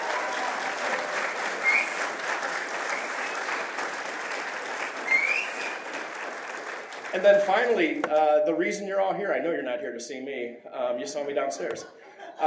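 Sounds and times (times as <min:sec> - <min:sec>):
audience applause: 0:00.0 - 0:07.9
speech: 0:07.2 - 0:12.4.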